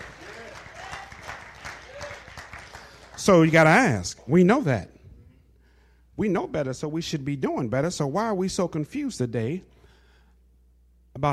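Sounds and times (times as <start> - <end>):
audience clapping: 0.0 - 4.3
speech: 3.2 - 4.9, 6.2 - 9.7.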